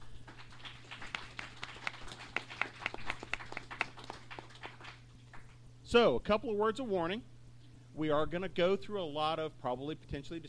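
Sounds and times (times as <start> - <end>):
audience round of applause: 0.0 - 5.6
speech: 5.9 - 7.3, 8.0 - 10.4.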